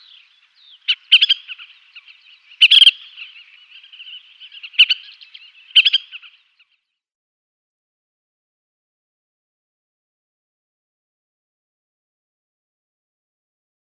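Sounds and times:
collared pratincole chattering calls: 0:00.8 - 0:06.4.

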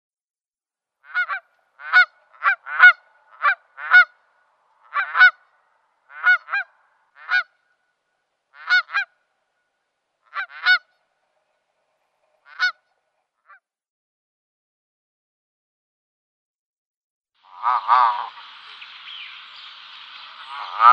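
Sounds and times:
flock of Canada geese honking and cackling: 0:01.1 - 0:07.6, 0:08.5 - 0:09.2, 0:10.3 - 0:11.0, 0:12.2 - 0:12.9, 0:17.5 - 0:20.9.

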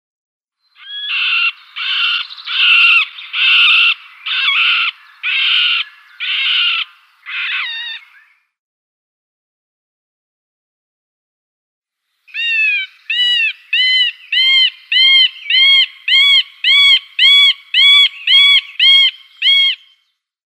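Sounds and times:
middle spotted woodpecker display calls: 0:00.8 - 0:08.4, 0:12.3 - 0:20.0.

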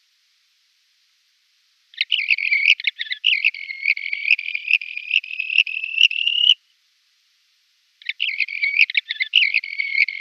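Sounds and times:
red-rumped wheatear scratchy buzzing song: 0:02.0 - 0:06.6, 0:08.0 - 0:10.1.

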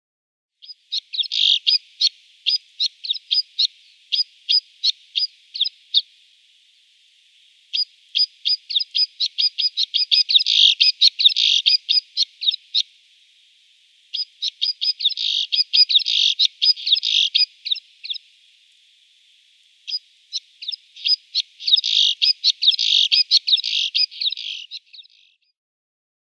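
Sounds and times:
snowfinch song: 0:00.6 - 0:06.3, 0:07.3 - 0:12.9, 0:14.0 - 0:18.4, 0:19.8 - 0:25.5.

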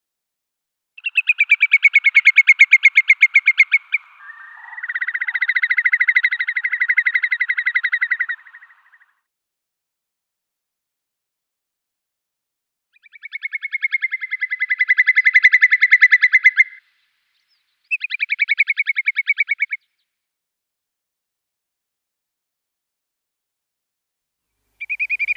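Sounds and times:
whimbrel giving rippling whistled calls: 0:01.0 - 0:09.2, 0:13.0 - 0:19.8, 0:24.8 - 0:25.3.

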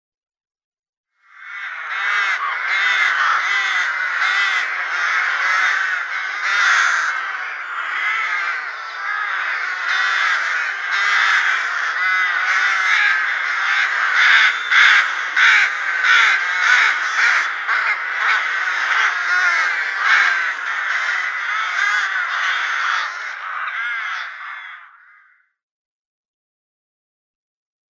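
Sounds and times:
rook cawing: 0:01.2 - 0:25.6.

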